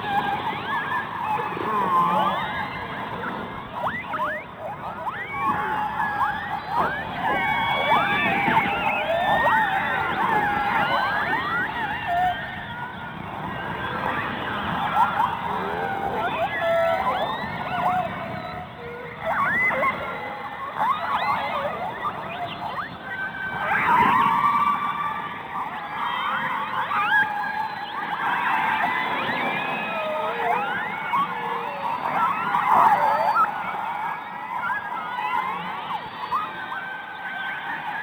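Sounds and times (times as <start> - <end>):
orca biological sounds underwater: 0.0 - 38.0.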